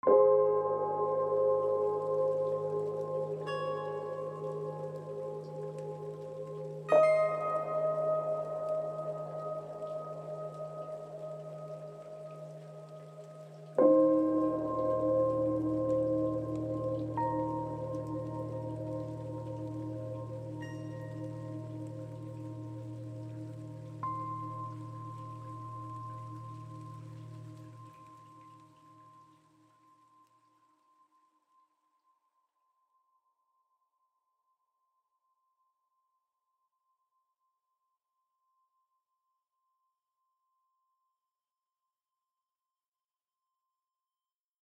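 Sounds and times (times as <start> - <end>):
ambient music: 0.0 - 29.5.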